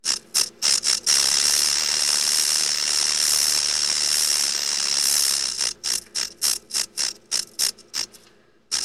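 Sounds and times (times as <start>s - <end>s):
rattlesnake rattle buzzing: 0.0s - 8.8s.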